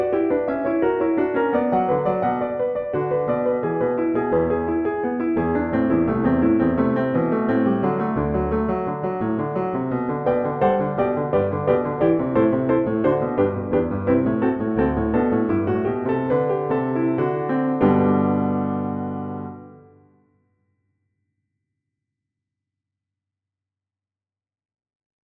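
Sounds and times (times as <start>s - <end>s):
Bechstein 1899 grand piano playing a fughetta: 0.0s - 20.1s.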